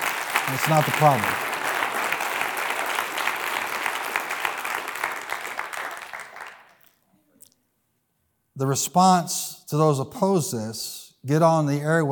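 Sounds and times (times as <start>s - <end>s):
audience applause for teachers: 0.0s - 6.8s
speech: 0.5s - 1.4s, 8.6s - 12.1s.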